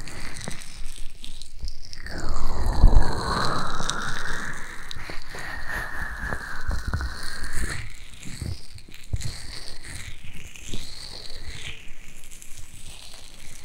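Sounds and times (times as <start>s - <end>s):
ASMR ear massage rubbing with crinkly crackling friction: 0.0s - 11.7s.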